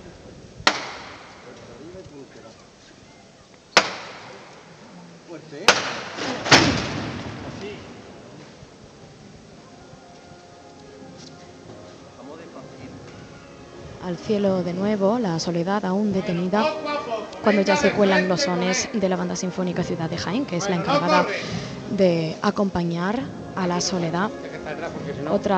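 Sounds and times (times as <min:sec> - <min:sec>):
knocker striking on Holy Week procession float: 0:00.6 - 0:01.6, 0:03.8 - 0:04.7, 0:05.7 - 0:08.0
speech: 0:05.4 - 0:06.2, 0:14.1 - 0:25.5.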